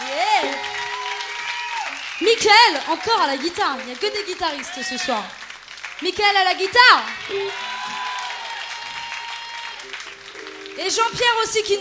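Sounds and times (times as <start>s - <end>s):
applause: 0.0s - 11.7s
speech: 2.2s - 5.4s, 6.0s - 7.6s, 10.8s - 11.7s.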